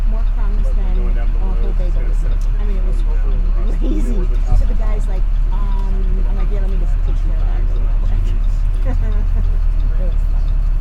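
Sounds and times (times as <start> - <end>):
bus in New York: 0.0 - 10.7
laughter: 0.7 - 10.6.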